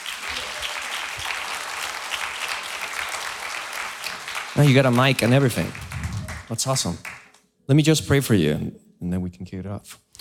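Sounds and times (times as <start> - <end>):
church congregation applauding to welcome a guest speaker: 0.0 - 7.4
speech: 4.6 - 5.8, 6.5 - 10.1.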